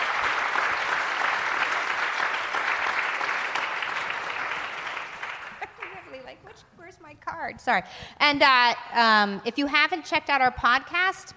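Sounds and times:
audience applause: 0.0s - 6.2s
speech: 7.5s - 11.3s.

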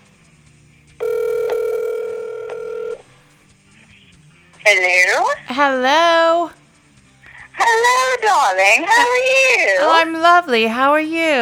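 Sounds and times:
telephone line tone: 1.0s - 3.1s
speech: 4.7s - 6.6s, 7.6s - 11.4s.

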